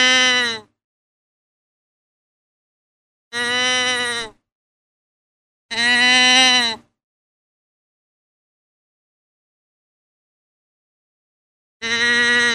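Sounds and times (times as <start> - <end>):
deer bleating: 0.0 - 0.7, 3.4 - 4.4, 5.7 - 6.8, 11.8 - 12.5.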